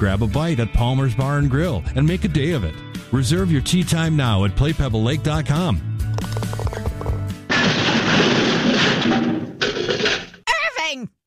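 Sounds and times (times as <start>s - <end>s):
speech: 0.0s - 6.6s
music: 0.0s - 7.5s
clattering debris: 6.2s - 10.4s
car crashing into garage door: 7.5s - 10.4s.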